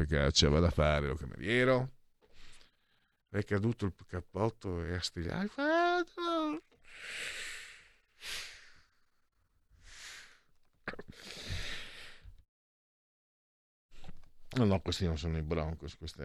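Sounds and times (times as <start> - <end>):
speech: 0.0 - 2.0, 3.3 - 6.2, 14.5 - 16.2
nervous coughing: 10.8 - 11.2.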